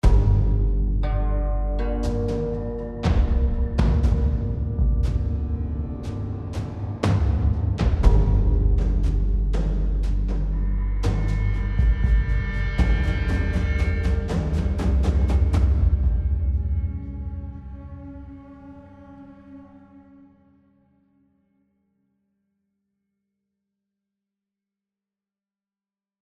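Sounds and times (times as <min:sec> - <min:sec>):
tension music: 0:00.0 - 0:20.9.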